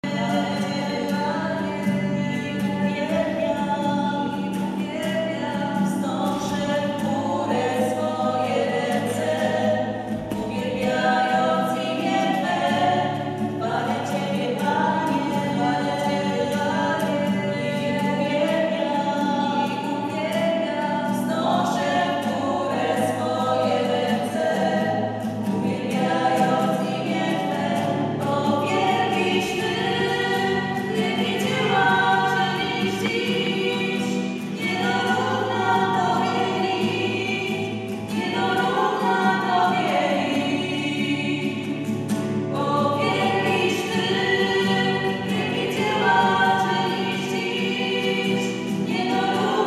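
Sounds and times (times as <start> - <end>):
schola choir singing: 0.0 - 49.6.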